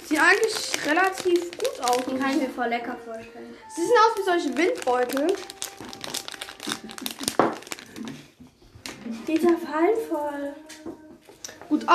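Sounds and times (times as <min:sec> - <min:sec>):
crinkly chocolate snack wrapper being opened: 0:00.0 - 0:02.6, 0:03.8 - 0:08.3, 0:09.2 - 0:09.6
speech: 0:00.2 - 0:05.6, 0:09.3 - 0:10.7, 0:11.7 - 0:11.9.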